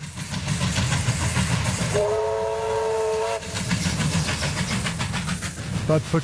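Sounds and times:
restored steam locomotive running: 0.0 - 6.2
steam locomotive whistle blast: 1.9 - 3.6.

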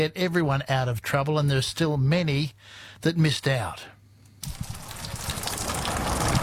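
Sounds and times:
speech: 0.0 - 4.7
steady rain falling: 4.4 - 6.4.

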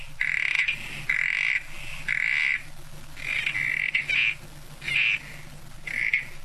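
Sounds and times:
low rumble: 0.0 - 6.4
southern corroboree frogs calling: 0.0 - 6.4.

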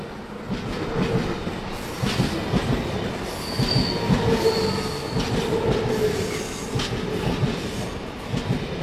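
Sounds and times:
train passing on rails: 0.0 - 8.8.

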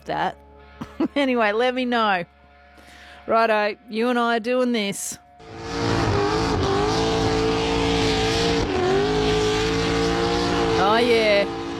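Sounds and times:
speech: 0.1 - 0.4, 1.0 - 2.4, 3.2 - 5.6, 10.9 - 11.6
car engine revving: 5.4 - 11.7.

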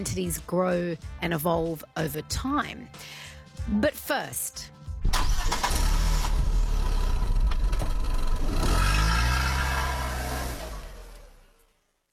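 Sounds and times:
speech: 0.0 - 4.8
car engine cranking and revving: 5.0 - 11.6.

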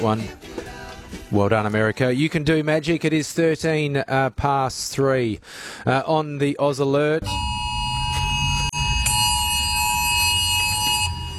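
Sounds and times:
speech: 0.0 - 0.6, 1.3 - 7.6
office phones' alert going off: 7.2 - 11.3.

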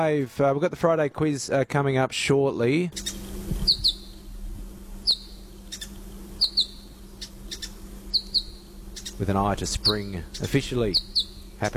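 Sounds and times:
speech: 0.0 - 3.6, 9.2 - 11.7
low steady hum: 0.0 - 11.7
New Holland honeyeaters calling: 2.9 - 11.7.

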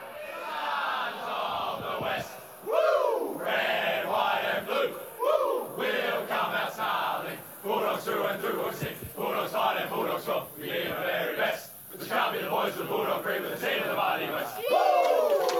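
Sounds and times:
football team singing its victory song: 0.0 - 14.7
whoops: 14.5 - 15.5.

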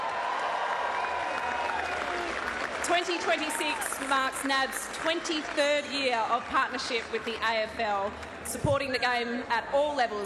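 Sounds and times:
audience applause: 0.0 - 7.3
speech: 2.9 - 10.2.

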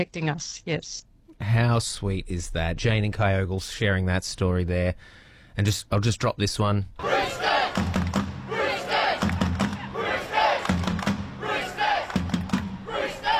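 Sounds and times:
speech: 0.0 - 8.1
recorded sports fans' team chant: 7.0 - 13.3.

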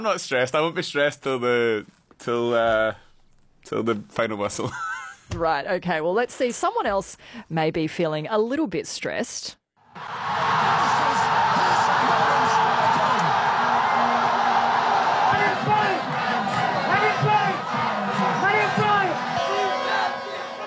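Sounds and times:
speech: 0.0 - 3.0, 3.6 - 11.2
street crowd in Dhaka chanting a name: 10.0 - 20.6.

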